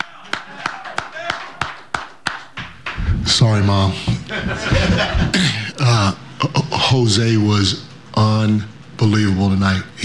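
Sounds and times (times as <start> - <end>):
people clapping: 0.0 - 3.4
speech: 3.4 - 10.0
laughter: 4.0 - 6.1.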